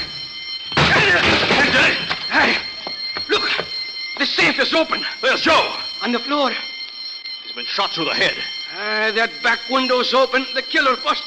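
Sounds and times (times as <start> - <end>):
locked door being broken down: 0.7 - 2.2
speech: 4.2 - 6.7, 7.6 - 11.2.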